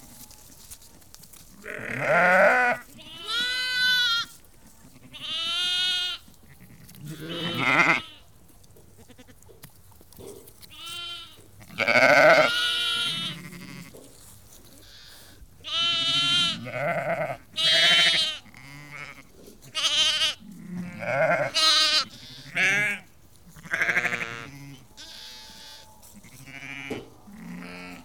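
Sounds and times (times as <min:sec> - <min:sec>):
sheep flock bleating: 0:01.6 - 0:08.3, 0:09.0 - 0:09.4, 0:10.7 - 0:14.0, 0:14.9 - 0:28.0.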